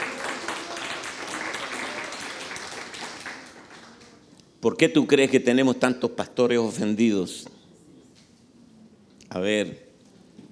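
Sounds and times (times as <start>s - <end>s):
audience applause: 0.0s - 4.2s
speech: 4.6s - 7.6s, 9.3s - 9.8s.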